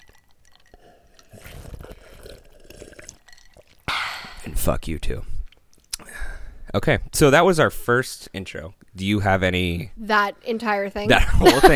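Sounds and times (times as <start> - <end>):
big sip of a drink at a microphone: 0.0 - 4.5
speech: 4.6 - 5.3, 6.7 - 11.7.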